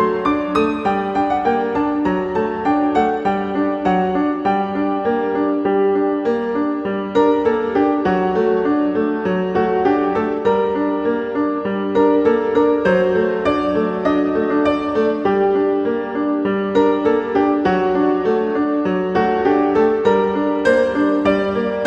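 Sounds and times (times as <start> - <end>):
piano sonata: 0.0 - 21.8.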